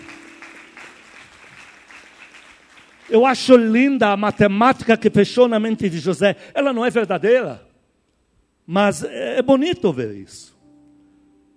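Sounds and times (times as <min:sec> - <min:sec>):
audience applauding: 0:00.0 - 0:03.6
speech: 0:03.1 - 0:07.6, 0:08.7 - 0:10.5.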